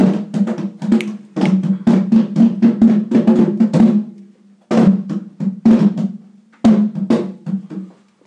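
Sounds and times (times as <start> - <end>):
drumming: 0.0 - 4.1, 4.7 - 8.0.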